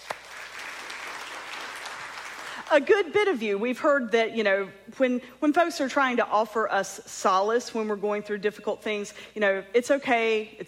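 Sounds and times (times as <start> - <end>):
audience clapping: 0.0 - 2.8
speech: 2.7 - 10.6.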